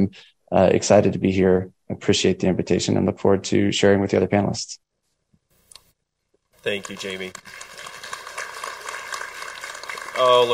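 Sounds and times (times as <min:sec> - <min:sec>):
speech: 0:00.0 - 0:04.8, 0:06.6 - 0:07.7, 0:10.2 - 0:10.5
audience applauding: 0:06.6 - 0:10.5.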